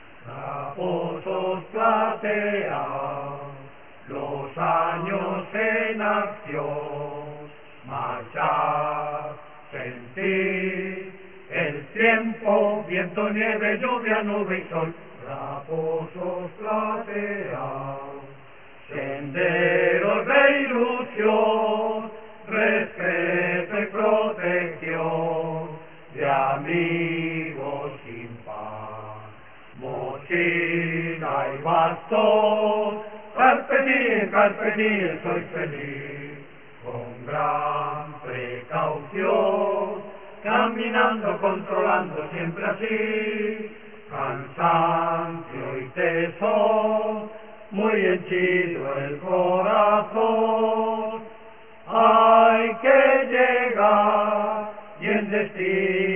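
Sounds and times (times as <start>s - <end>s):
choir singing a hymn: 0.0s - 56.1s.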